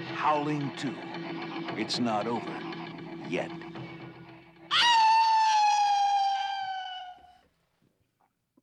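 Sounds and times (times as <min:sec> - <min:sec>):
speech: 0:00.4 - 0:01.1, 0:01.7 - 0:02.6, 0:03.3 - 0:03.7, 0:04.7 - 0:04.9
long loud howl at the end of a movie trailer: 0:04.7 - 0:07.4.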